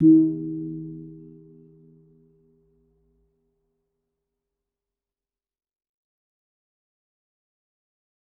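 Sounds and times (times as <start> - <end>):
kempul gong of a gamelan: 0.0 - 1.6.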